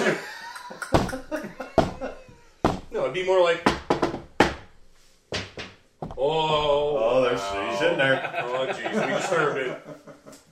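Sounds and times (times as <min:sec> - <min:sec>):
laughter: 0:00.0 - 0:02.6, 0:07.2 - 0:10.5
speech: 0:00.1 - 0:01.4, 0:02.9 - 0:03.8, 0:06.2 - 0:10.0
knocking on a door: 0:00.9 - 0:06.3.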